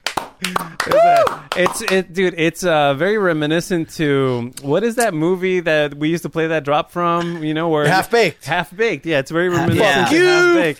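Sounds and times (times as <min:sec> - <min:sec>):
lone person clapping slowly: 0:00.0 - 0:02.0
person whooping cheer: 0:00.4 - 0:01.5
speech: 0:00.4 - 0:10.7.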